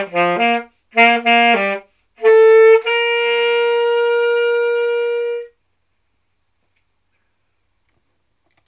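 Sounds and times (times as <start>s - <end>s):
saxophone playing at dinner with grandma: 0.0s - 5.6s.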